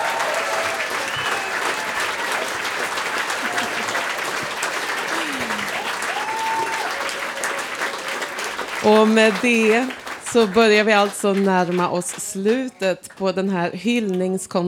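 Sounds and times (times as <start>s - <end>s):
faint whistles and cheers: 0.0s - 8.9s
laughter: 0.0s - 13.2s
large audience applause after a concert: 0.0s - 14.2s
speech: 8.8s - 14.6s.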